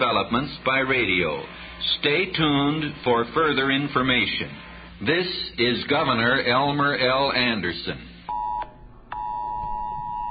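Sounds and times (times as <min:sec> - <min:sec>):
speech: 0:00.0 - 0:08.1
phone emergency alert tone: 0:08.3 - 0:10.3.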